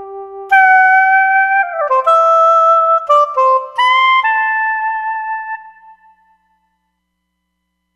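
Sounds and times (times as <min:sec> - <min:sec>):
solo soprano saxophone on a synthesizer: 0:00.0 - 0:05.8.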